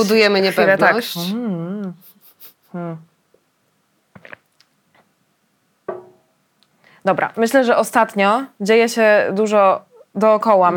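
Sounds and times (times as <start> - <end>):
speech: 0.0 - 2.0, 2.7 - 3.1, 7.0 - 10.7
person gulping water: 4.1 - 5.1.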